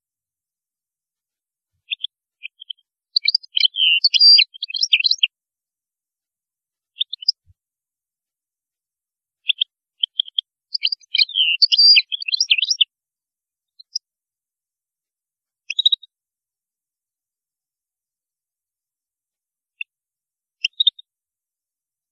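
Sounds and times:
European goldfinch twittering song: 0:01.8 - 0:05.3, 0:07.0 - 0:07.5, 0:09.4 - 0:12.9, 0:13.7 - 0:14.0, 0:15.7 - 0:16.1, 0:20.6 - 0:21.1.

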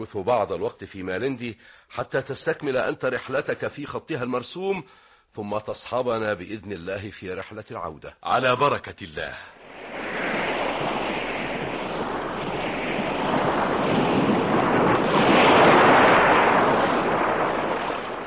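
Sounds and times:
speech: 0:00.0 - 0:10.0
gusty wind: 0:09.5 - 0:18.2
sea waves rushing with a hissing wash: 0:09.6 - 0:18.2.

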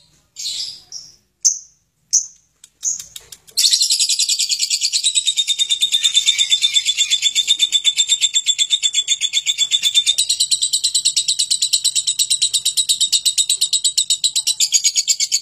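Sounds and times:
lovebird long chattering trill: 0:00.4 - 0:15.3.

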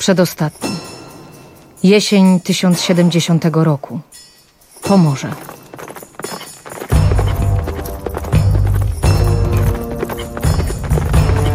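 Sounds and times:
speech: 0:00.0 - 0:00.8, 0:01.8 - 0:04.2, 0:04.8 - 0:05.6
horses' hooves clip-clopping with riders at night: 0:04.2 - 0:11.5.

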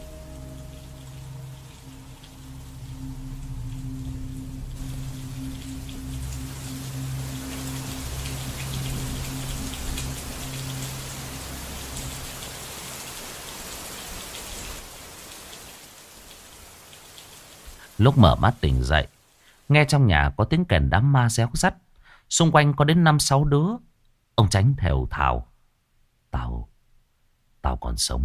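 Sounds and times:
low sustained droning tone: 0:00.0 - 0:12.7
heavy rain pouring: 0:00.0 - 0:19.8
speech: 0:18.0 - 0:25.5, 0:27.6 - 0:28.2.

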